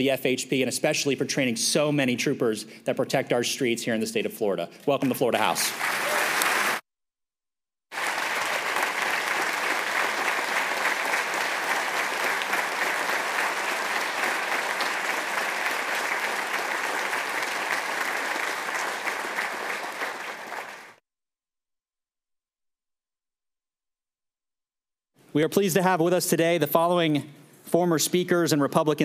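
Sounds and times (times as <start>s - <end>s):
speech: 0.0s - 6.1s, 25.4s - 29.0s
audience applause: 5.4s - 6.8s, 7.9s - 21.0s.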